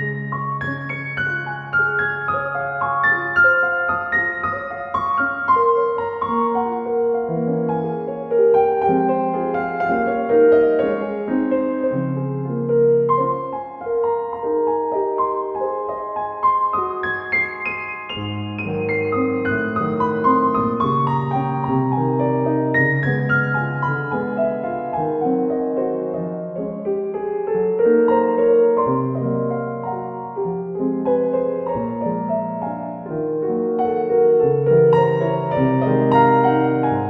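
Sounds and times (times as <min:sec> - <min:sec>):
piano étude variation: 0:00.0 - 0:37.0.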